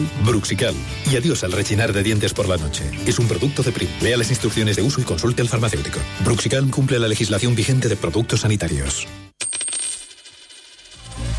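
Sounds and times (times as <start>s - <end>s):
speech: 0.0s - 9.2s
euro coin dropping and bouncing: 9.3s - 11.3s.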